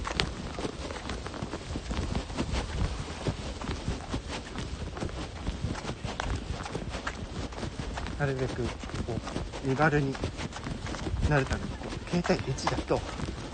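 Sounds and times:
footsteps of person jogging: 0:00.0 - 0:13.5
steady rushing noise: 0:00.0 - 0:13.5
speech: 0:08.2 - 0:10.7, 0:11.3 - 0:13.2.

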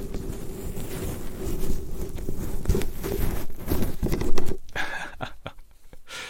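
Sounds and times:
deliberate rustling of microphone windscreen: 0:00.0 - 0:05.9
person laughing: 0:04.7 - 0:06.2.

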